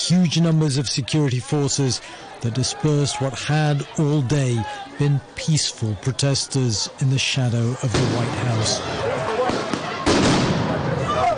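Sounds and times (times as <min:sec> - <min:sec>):
speech: 0:00.1 - 0:09.1
sound bombs: 0:07.9 - 0:08.4, 0:09.5 - 0:11.0
rubber bullets fired: 0:09.4 - 0:10.8.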